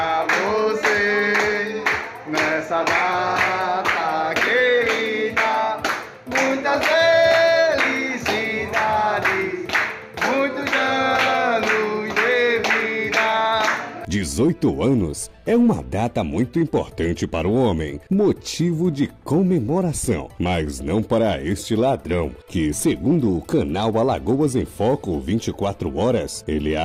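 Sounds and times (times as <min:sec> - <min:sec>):
people singing a birthday song for someone turning 18: 0:00.0 - 0:14.1
rhythmic hand clapping: 0:00.0 - 0:14.1
speech: 0:14.4 - 0:26.8.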